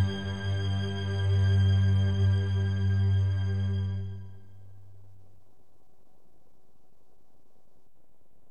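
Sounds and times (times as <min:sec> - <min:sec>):
orchestral action and drama trailer music: 0:00.0 - 0:04.6.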